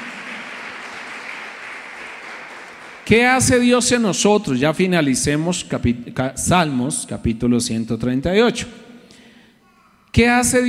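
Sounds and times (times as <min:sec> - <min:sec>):
applause: 0:00.0 - 0:03.7
speech: 0:03.1 - 0:08.9, 0:10.1 - 0:10.6.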